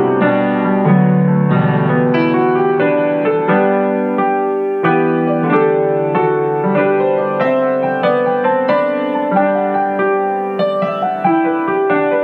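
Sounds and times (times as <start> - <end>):
solo piano: 0.0 - 12.2.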